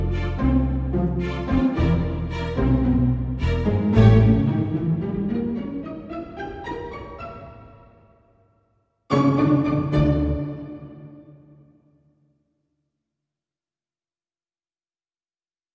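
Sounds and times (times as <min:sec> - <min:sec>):
tango played by strings only: 0:00.0 - 0:07.9, 0:09.1 - 0:11.6.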